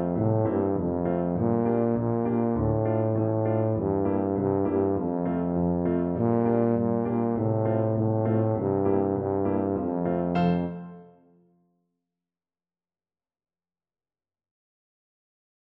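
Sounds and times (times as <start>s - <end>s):
tuba playing a hymn: 0.0s - 11.1s.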